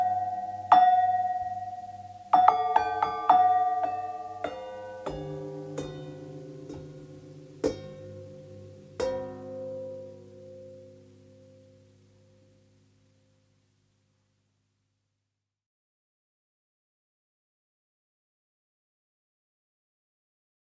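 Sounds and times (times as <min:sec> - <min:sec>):
bell lyre: 0:00.0 - 0:12.5.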